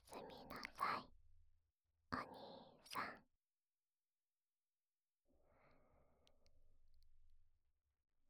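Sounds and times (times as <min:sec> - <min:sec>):
breathy whispering voice in the right ear for sleeping beside ASMR: 0:00.0 - 0:01.1, 0:02.2 - 0:03.2.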